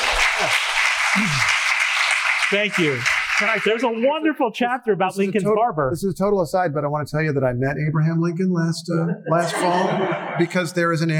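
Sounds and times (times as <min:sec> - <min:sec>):
laughter: 0:00.0 - 0:01.7, 0:08.9 - 0:11.1
audience applause: 0:00.0 - 0:04.1
speech: 0:00.4 - 0:01.6, 0:02.5 - 0:11.1.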